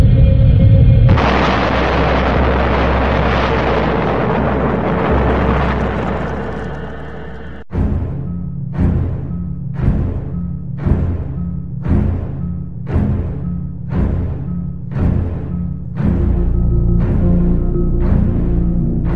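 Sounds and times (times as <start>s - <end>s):
low rumble: 0.0s - 19.1s
1908 Tunguska explosion in Siberia: 0.1s - 7.8s
sharp heavy booms: 0.9s - 8.1s.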